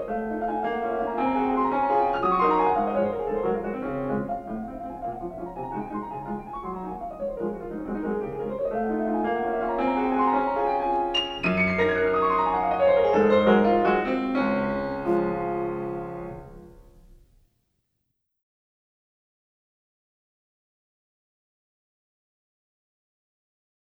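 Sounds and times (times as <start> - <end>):
piano waltz in D flat: 0.0 - 17.3.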